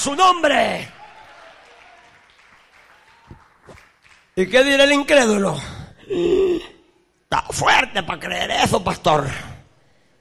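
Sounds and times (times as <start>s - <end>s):
speech: 0.0s - 1.0s, 4.4s - 6.7s, 7.3s - 9.5s
audience clapping: 0.7s - 4.6s.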